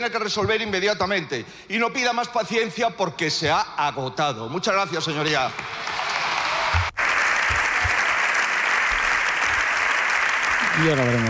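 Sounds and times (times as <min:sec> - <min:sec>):
speech: 0:00.0 - 0:06.0, 0:10.8 - 0:11.2
long applause from a large crowd: 0:05.5 - 0:11.2.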